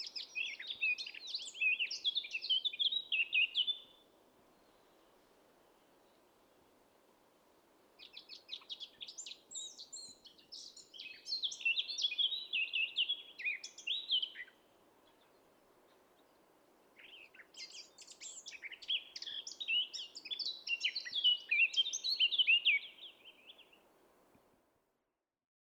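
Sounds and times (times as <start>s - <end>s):
Eurasian blackcap singing: 0.0s - 3.9s, 8.0s - 14.5s, 17.0s - 23.7s.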